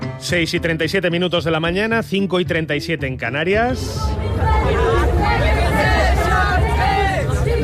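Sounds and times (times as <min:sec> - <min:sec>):
speech: 0:00.3 - 0:04.8
crowd at a Berlin street protest over rising housing prices: 0:03.6 - 0:07.6.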